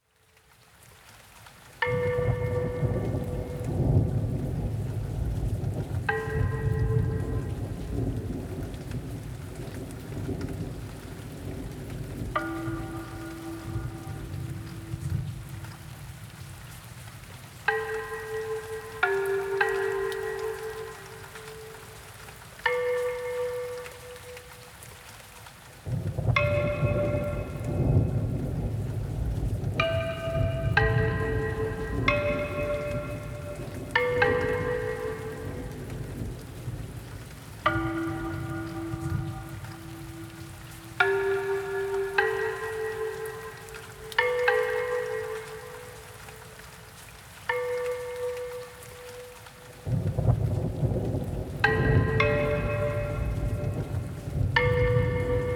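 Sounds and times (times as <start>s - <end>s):
Asian bells ringing: 1.8s - 4.6s, 6.1s - 8.4s, 12.4s - 15.3s, 17.7s - 24.8s, 26.4s - 29.0s, 29.8s - 36.8s, 37.6s - 46.5s, 47.5s - 50.0s, 51.6s - 55.5s
thunderstorm: 1.8s - 24.0s, 25.8s - 46.1s, 48.9s - 55.5s.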